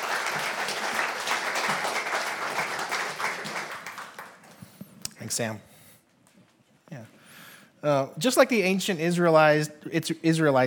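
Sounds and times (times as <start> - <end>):
room full of people applauding: 0.0 - 4.6
speech: 5.3 - 5.7, 7.8 - 10.6.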